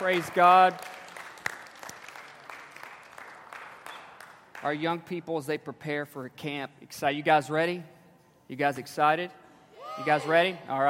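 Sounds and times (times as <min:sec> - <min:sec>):
speech: 0:00.0 - 0:01.0, 0:04.6 - 0:07.9, 0:08.5 - 0:09.4, 0:10.0 - 0:10.8
audience applauding: 0:00.0 - 0:04.7.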